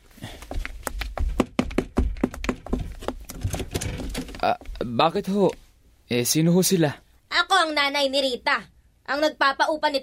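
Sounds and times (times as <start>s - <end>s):
loud angry knocking on a door: 1.2s - 4.3s
speech: 4.4s - 7.0s, 7.7s - 10.0s.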